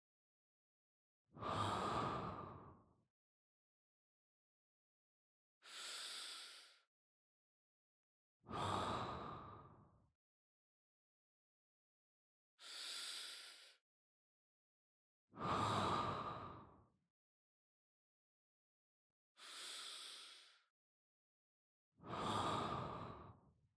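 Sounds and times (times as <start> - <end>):
person breathing in sleep: 1.4 - 2.7, 5.6 - 6.9, 8.5 - 9.8, 12.6 - 13.8, 15.4 - 16.8, 19.4 - 20.7, 22.0 - 23.4.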